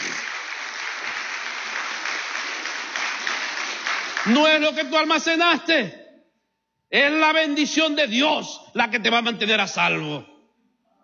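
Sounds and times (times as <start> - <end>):
audience applause: 0.0 - 4.6
speech: 4.2 - 6.0, 6.9 - 10.3.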